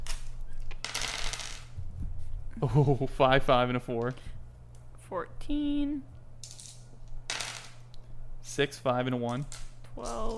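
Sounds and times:
low steady hum: 0.0 - 10.3
dice rolling on a table: 0.7 - 1.8, 6.4 - 7.8
speech: 2.6 - 4.3, 5.1 - 6.1, 8.6 - 10.3.

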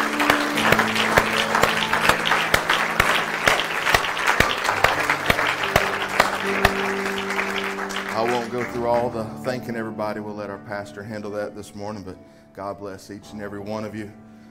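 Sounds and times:
audience applause: 0.0 - 9.4
speech: 8.6 - 14.2.

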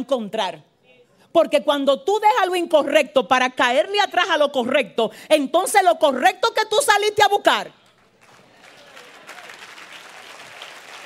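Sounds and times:
speech: 0.0 - 0.7, 1.3 - 7.8
audience applause: 8.2 - 11.0.

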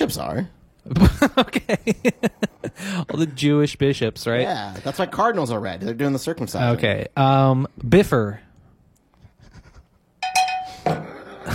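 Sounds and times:
speech: 0.1 - 8.5
cowbell ringing: 10.2 - 10.9.

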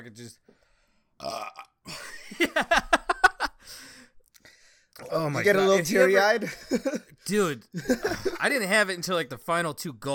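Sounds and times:
speech: 0.0 - 0.5, 1.2 - 3.0, 5.1 - 10.1
burping: 1.2 - 1.9.

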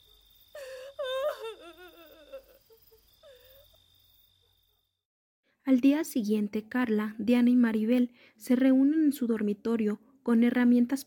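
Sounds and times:
woman crying inconsolably: 0.5 - 3.8
speech: 5.7 - 11.0.

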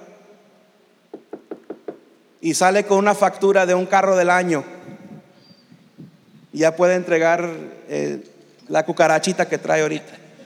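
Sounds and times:
knocking on a door: 1.1 - 2.1
speech: 2.4 - 4.7, 6.6 - 10.2.

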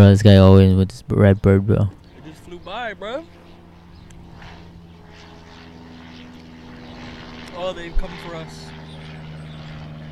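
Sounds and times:
speech: 0.0 - 2.0, 2.6 - 3.3, 7.6 - 8.6
airplane flying overhead: 0.0 - 10.1.

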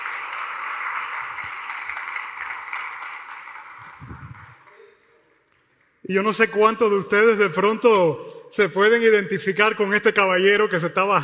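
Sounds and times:
audience applause: 0.0 - 4.8
speech: 6.1 - 11.2.

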